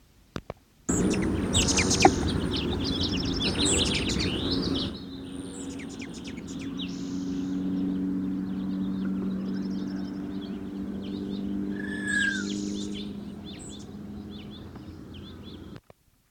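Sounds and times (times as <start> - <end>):
Allen's hummingbird wing whistle: 0.9 - 7.6, 11.7 - 13.9
Allen's hummingbird aggressive chatter: 0.9 - 15.8
steady low hum: 0.9 - 15.8.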